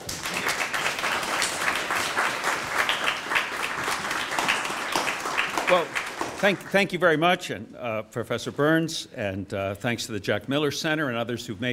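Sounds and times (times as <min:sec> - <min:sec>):
audience applause welcoming Professor Stoner: 0:00.0 - 0:07.0
speech: 0:05.7 - 0:11.7.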